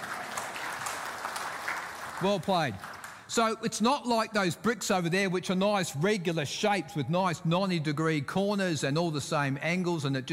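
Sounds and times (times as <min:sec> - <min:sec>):
audience clapping hands: 0:00.0 - 0:03.4
speech: 0:02.2 - 0:10.3.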